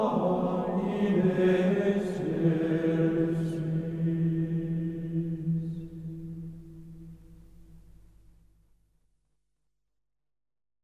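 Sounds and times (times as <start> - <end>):
Benedictine monks chanting an antiphon in mode 7: 0.0 - 5.9.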